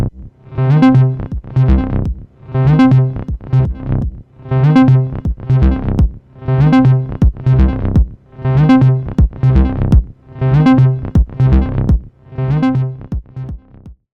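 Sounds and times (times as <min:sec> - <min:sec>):
ducking bass with reverb and delay: 0:00.8 - 0:12.0
Roland T-8 beat machine bass drum: 0:01.2 - 0:08.2, 0:08.8 - 0:10.2, 0:10.8 - 0:12.1, 0:13.1 - 0:14.0.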